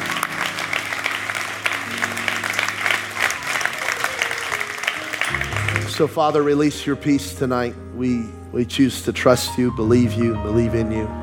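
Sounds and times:
audience clapping hands: 0.0 - 6.5
speech: 6.0 - 11.2.

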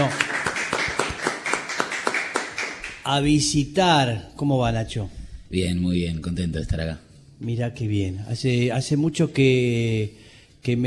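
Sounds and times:
speech: 0.0 - 0.2, 3.1 - 10.8
studio applause for a guest: 0.0 - 3.0.

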